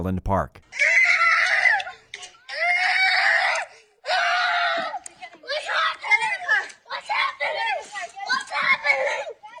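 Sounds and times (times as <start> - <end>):
child screaming while fleeing gunfire at a parade: 0.7 - 9.5.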